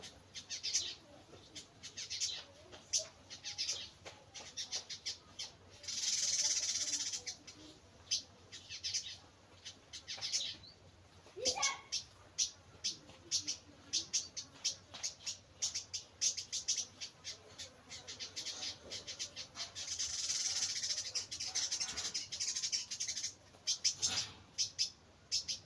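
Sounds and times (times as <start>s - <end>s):
bird chirping: 0.0s - 25.6s.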